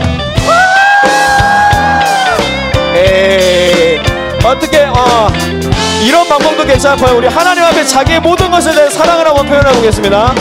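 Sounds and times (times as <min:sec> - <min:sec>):
crowd shouting and cheering: 0:00.0 - 0:04.1
speech: 0:04.5 - 0:10.3.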